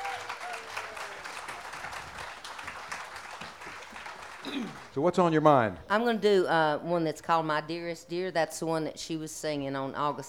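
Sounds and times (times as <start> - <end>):
crowd applause: 0.0 - 5.6
speech: 4.4 - 10.2.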